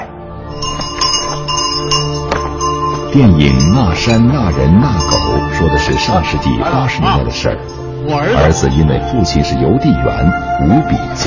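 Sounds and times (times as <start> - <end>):
bicycle bell ringing: 0.5 - 6.3
speech: 3.1 - 11.2.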